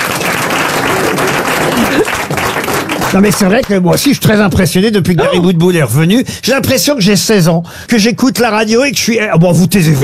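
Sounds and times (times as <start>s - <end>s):
applause: 0.0s - 3.8s
speech: 3.1s - 10.0s.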